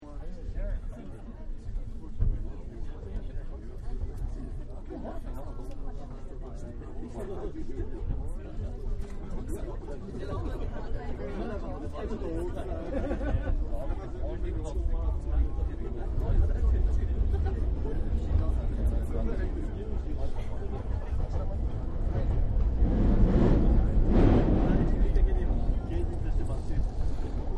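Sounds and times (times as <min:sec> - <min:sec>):
crowded train car in Tokyo: 0:00.0 - 0:27.5
laughter: 0:12.3 - 0:14.3, 0:16.8 - 0:22.3.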